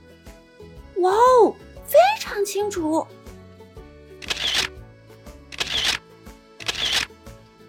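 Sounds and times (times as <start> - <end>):
soft music: 0.0 - 7.6
speech: 1.0 - 1.6, 2.4 - 3.2
camera shutter clicks: 4.2 - 4.8, 5.5 - 6.0, 6.6 - 7.1.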